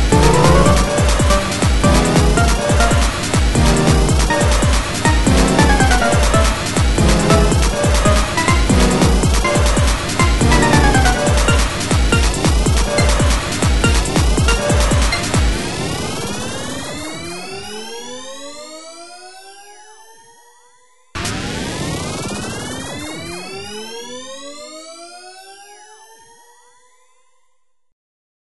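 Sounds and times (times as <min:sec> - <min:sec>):
neurojazz music: 0:00.0 - 0:15.5.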